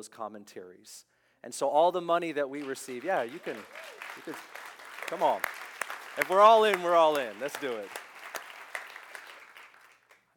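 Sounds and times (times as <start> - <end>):
speech: 0.0 - 5.6, 6.2 - 8.0
audience clapping: 2.5 - 10.3.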